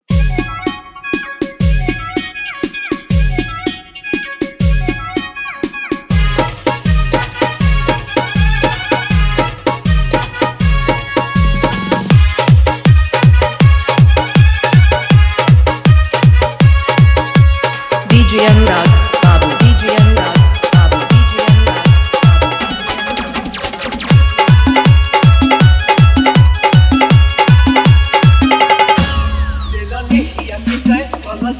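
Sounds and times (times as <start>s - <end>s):
dholak bass dance mix: 0.0s - 0.8s, 1.4s - 3.9s, 4.5s - 5.3s, 6.1s - 31.5s.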